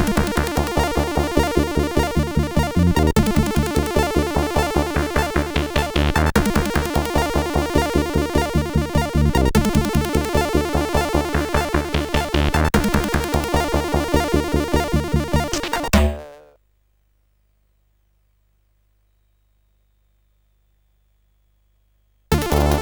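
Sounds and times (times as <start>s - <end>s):
techno music on a SID CSG8580R5 chip: 0.0s - 16.5s, 22.3s - 22.8s.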